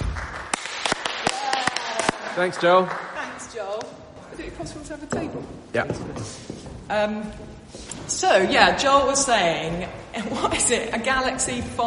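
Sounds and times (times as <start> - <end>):
clapping: 0.0 - 3.9
speech: 2.4 - 11.8.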